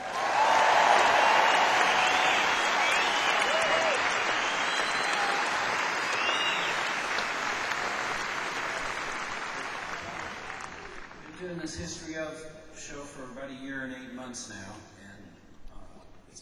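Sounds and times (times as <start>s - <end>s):
whoops and voices: 0.0s - 6.9s
audience applause: 0.0s - 11.6s
speech: 11.7s - 14.9s.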